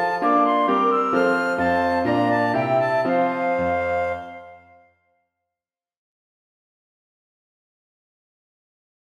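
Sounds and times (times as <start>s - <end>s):
flute clarinet and piano: 0.0s - 5.0s.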